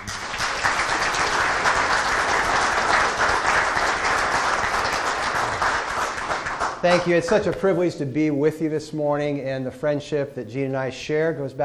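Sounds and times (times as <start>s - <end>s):
audience applauding: 0.0s - 7.2s
speech: 6.8s - 11.6s.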